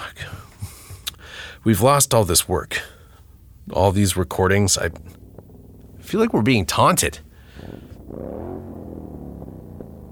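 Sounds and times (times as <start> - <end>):
speech: 1.6 - 3.0, 3.7 - 5.2, 6.1 - 8.5
very loud motorcycle passing outside: 4.7 - 10.0.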